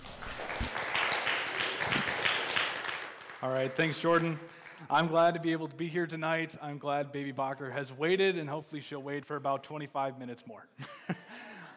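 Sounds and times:
church congregation applauding a guest preacher: 0:00.0 - 0:05.0
speech: 0:03.4 - 0:11.2.

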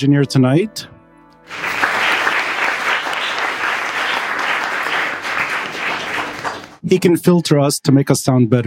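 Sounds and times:
speech: 0:00.0 - 0:00.9, 0:01.5 - 0:01.8, 0:06.9 - 0:08.6
round of applause: 0:01.5 - 0:06.8.

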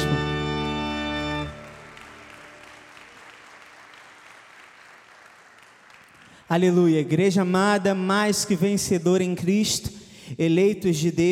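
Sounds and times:
audience applause: 0:00.6 - 0:06.5
speech: 0:06.5 - 0:11.3.

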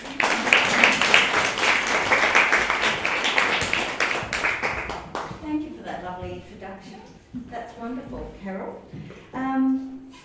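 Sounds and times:
audience clapping to welcome a speaker at an evening talk: 0:00.0 - 0:05.4.

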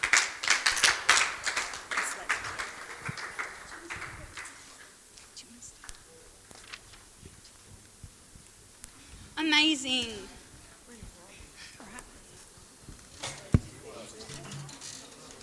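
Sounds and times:
audience applause: 0:00.0 - 0:04.8
speech: 0:09.6 - 0:10.4.

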